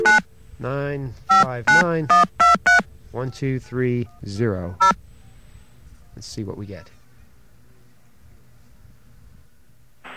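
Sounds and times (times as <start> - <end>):
touch-tone telephone dialing beeps: 0.0 - 0.2, 1.3 - 2.8
speech: 0.6 - 2.4, 3.1 - 5.0, 6.2 - 7.0.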